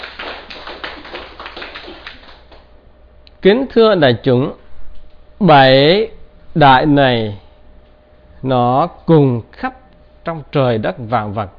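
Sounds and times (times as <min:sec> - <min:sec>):
audience applause: 0:00.0 - 0:02.7
speech: 0:03.4 - 0:04.6, 0:05.4 - 0:07.4, 0:08.4 - 0:11.5.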